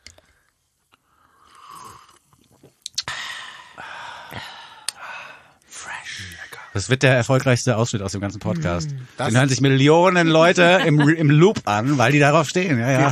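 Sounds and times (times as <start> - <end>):
people gulping drinks: 1.4 - 5.1
wet mouth sounds: 1.5 - 3.3
speech: 6.8 - 13.1
laughter: 10.3 - 13.1.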